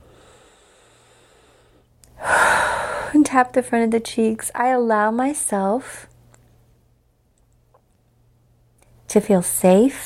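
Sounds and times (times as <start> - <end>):
person inhaling deeply during a guided tapping exercise for stress: 0.0 - 3.2
speech: 3.4 - 6.1, 9.1 - 10.0.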